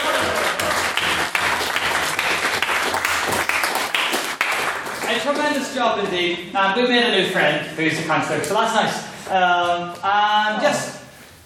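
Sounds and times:
crowd applause: 0.0s - 5.3s
speech: 5.3s - 10.9s.

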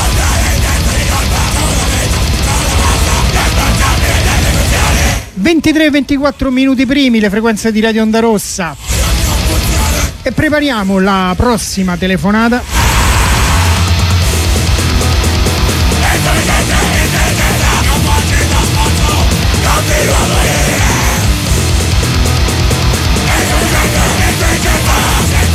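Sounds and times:
wall of dissonant noise music: 0.0s - 5.4s, 12.7s - 25.5s
speech: 5.5s - 8.9s, 10.2s - 12.9s.

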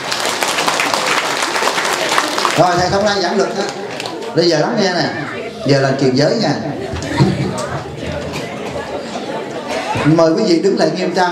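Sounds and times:
audience applause: 0.0s - 4.4s
speech: 2.6s - 7.7s, 10.0s - 11.3s.

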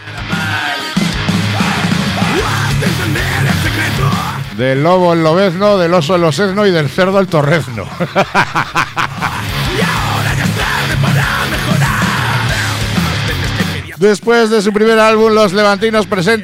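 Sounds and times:
wavering growled singing: 0.0s - 4.6s, 9.0s - 14.0s
harsh shouted vocals: 0.0s - 16.4s
loud groove metal track with distorted instruments: 0.0s - 16.4s
speech: 3.8s - 9.1s, 14.0s - 16.4s
laughter: 7.4s - 12.3s.

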